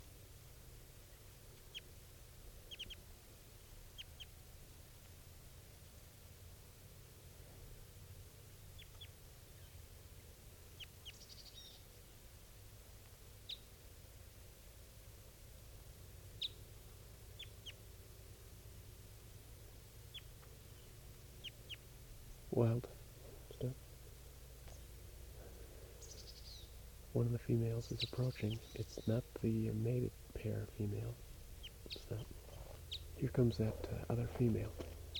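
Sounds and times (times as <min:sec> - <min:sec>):
birds calling: 0:02.6 - 0:03.0, 0:10.7 - 0:12.0, 0:16.3 - 0:18.0, 0:20.0 - 0:35.1
speech: 0:22.6 - 0:23.0, 0:23.6 - 0:23.8, 0:27.1 - 0:31.3, 0:32.0 - 0:32.4, 0:33.2 - 0:34.9.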